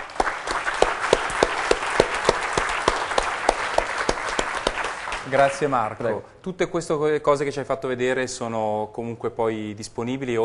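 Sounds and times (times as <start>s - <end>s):
audience applause: 0.0s - 5.8s
speech: 5.3s - 10.4s.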